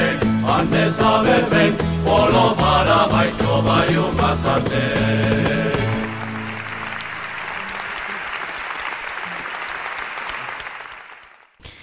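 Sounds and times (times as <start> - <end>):
speech: 0.6 - 5.7
audience applause after a song: 5.4 - 11.6.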